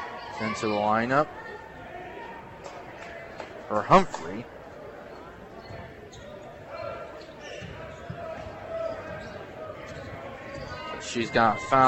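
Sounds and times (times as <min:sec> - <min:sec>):
steady crowd din: 0:00.0 - 0:11.8
speech: 0:00.4 - 0:01.5, 0:03.7 - 0:04.6, 0:11.1 - 0:11.8
basketball dribbled on the court during an Emporia High girls' game: 0:07.5 - 0:10.8.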